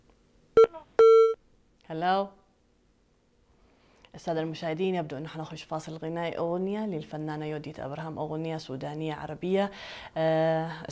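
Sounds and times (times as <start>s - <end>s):
telephone line beeps as a call connects: 0.6s - 1.4s
speech: 1.9s - 2.4s, 4.2s - 10.8s.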